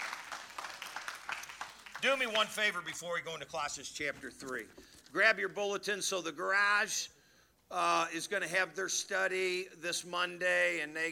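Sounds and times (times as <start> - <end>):
audience applauding: 0.0 - 3.2
speech: 2.0 - 11.0.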